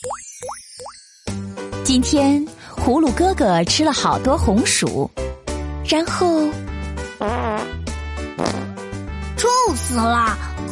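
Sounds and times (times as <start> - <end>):
speech: 1.9 - 5.2, 5.9 - 6.6, 7.2 - 7.8, 9.9 - 10.6
farting: 7.2 - 7.8, 8.4 - 8.8.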